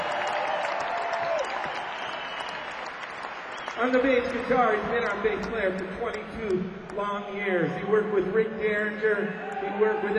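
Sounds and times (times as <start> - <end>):
audience round of applause: 0.0 - 5.3
speech: 3.8 - 10.1.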